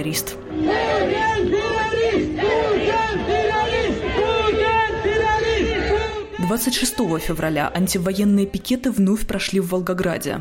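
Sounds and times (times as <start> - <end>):
speech: 0.0 - 2.4, 6.5 - 10.4
large crowd chanting slogans in unison: 0.4 - 7.4.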